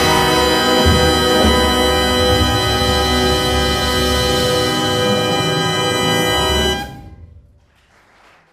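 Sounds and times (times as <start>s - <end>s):
dance music: 0.0s - 6.3s.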